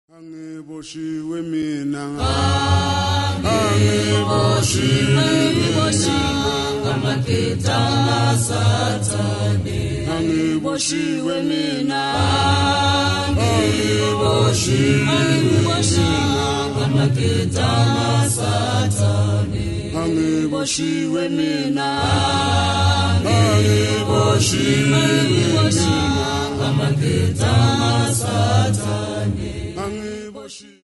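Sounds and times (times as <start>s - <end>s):
church choir singing: 0.8s - 30.8s.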